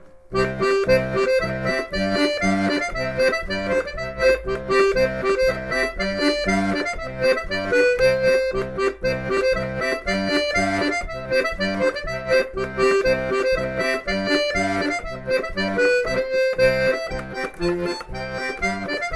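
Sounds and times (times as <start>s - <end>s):
accordion: 0.0s - 19.1s.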